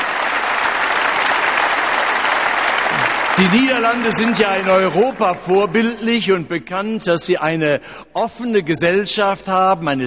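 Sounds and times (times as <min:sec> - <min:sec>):
large audience applause: 0:00.0 - 0:05.9
speech: 0:03.4 - 0:10.0.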